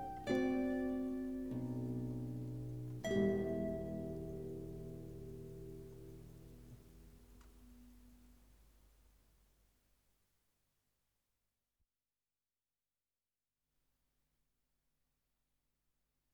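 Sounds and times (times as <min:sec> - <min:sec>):
guitar quartet playing: 0:00.0 - 0:06.7.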